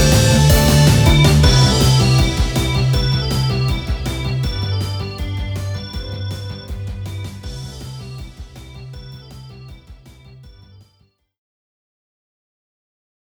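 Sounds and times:
victory song: 0:00.0 - 0:10.4.

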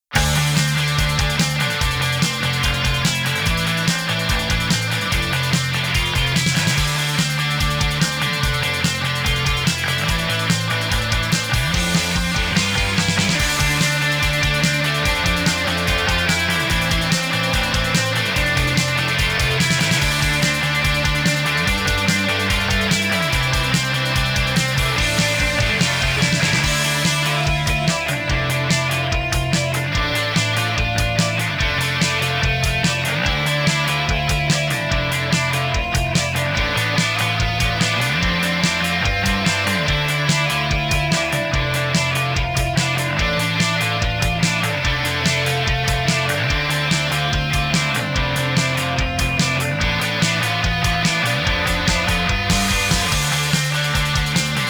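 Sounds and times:
radio rock music: 0:00.0 - 0:54.6.

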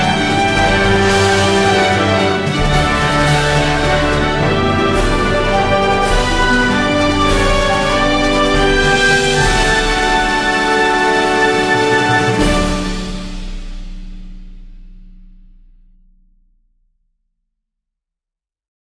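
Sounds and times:
five-bell melody: 0:00.0 - 0:13.3.

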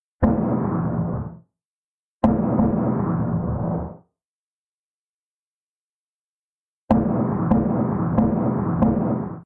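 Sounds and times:
background gunshots: 0:00.2 - 0:01.4, 0:02.2 - 0:04.0, 0:06.9 - 0:09.4.

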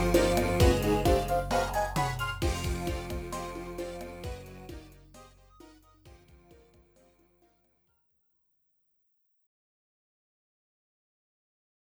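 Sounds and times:
unsettling atmosphere: 0:00.0 - 0:05.8.

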